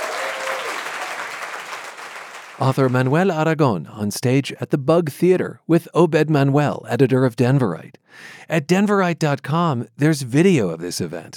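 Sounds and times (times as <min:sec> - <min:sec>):
audience applause: 0:00.0 - 0:03.1
speech: 0:02.6 - 0:11.3.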